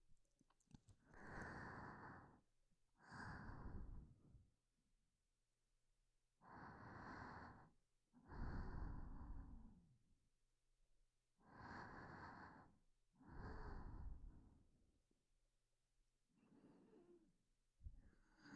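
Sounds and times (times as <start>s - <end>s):
person breathing in sleep: 1.1s - 2.4s, 3.0s - 4.3s, 6.4s - 9.9s, 11.4s - 14.7s, 16.4s - 17.3s, 18.0s - 18.5s.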